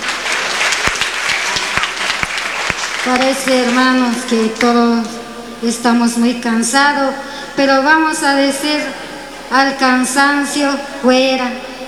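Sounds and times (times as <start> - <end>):
audience applause: 0.0 - 5.2
speech: 3.0 - 11.7.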